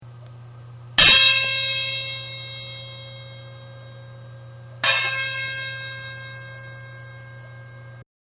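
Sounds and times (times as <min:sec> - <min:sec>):
banjo ringing tone: 0:01.0 - 0:04.2, 0:04.8 - 0:08.0.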